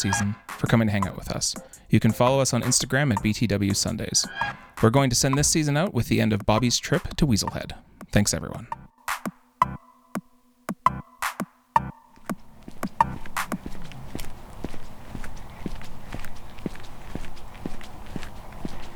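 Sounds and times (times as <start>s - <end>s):
speech: 0.0s - 8.8s
boots walking on a paved walking and biking path: 11.8s - 18.9s.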